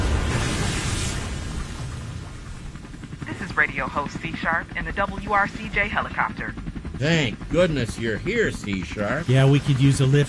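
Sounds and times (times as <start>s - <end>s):
wave crashing sound effect: 0.0s - 2.7s
speech: 3.6s - 10.2s.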